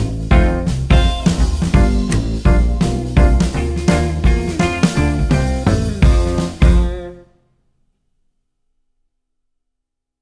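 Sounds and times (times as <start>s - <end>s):
trombone: 0.0s - 7.2s
blues backing track: 0.0s - 7.3s
piano: 0.0s - 7.3s.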